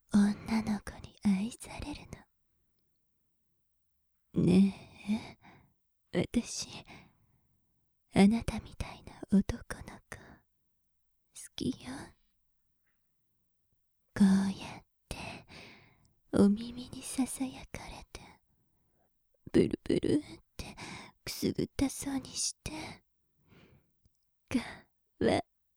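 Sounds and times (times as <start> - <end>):
succubus whispering: 0.1 - 2.3, 4.4 - 5.4, 6.2 - 7.0, 8.2 - 10.4, 11.4 - 12.2, 14.2 - 15.5, 16.4 - 18.4, 19.5 - 23.0, 24.5 - 25.4
succubus breathing: 15.2 - 16.0, 20.7 - 21.2, 23.4 - 23.9.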